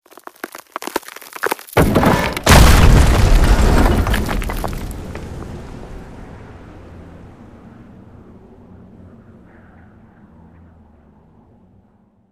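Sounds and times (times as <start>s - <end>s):
statue breaking: 0.0s - 5.8s.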